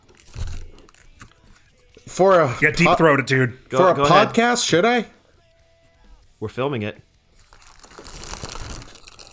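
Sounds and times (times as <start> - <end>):
biting into a whole hot dog: 0.0 - 2.1, 7.4 - 9.3
speech: 2.2 - 5.2, 6.4 - 7.1.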